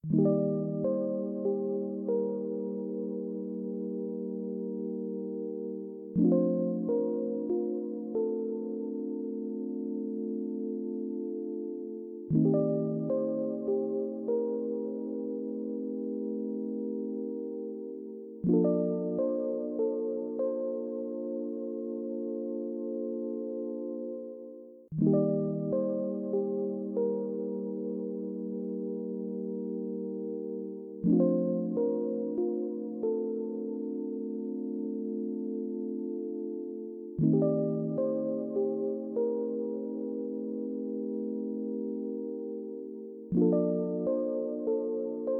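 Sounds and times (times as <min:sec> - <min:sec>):
melancholy clean music: 0:00.0 - 0:45.3.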